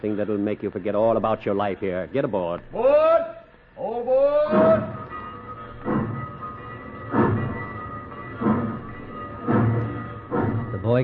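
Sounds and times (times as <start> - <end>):
speech: 0.0 - 5.0, 10.9 - 11.0
train rolling along tracks: 4.5 - 11.0.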